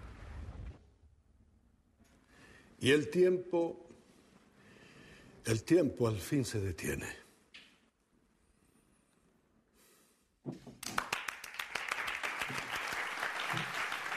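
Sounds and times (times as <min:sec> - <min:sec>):
speech: 0:02.8 - 0:03.8, 0:05.5 - 0:07.2
students giving a standing ovation: 0:10.9 - 0:14.1.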